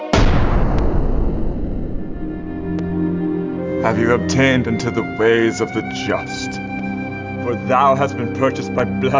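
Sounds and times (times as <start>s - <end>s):
gunshot: 0.2s - 3.2s
speech: 3.9s - 6.6s, 7.4s - 9.1s.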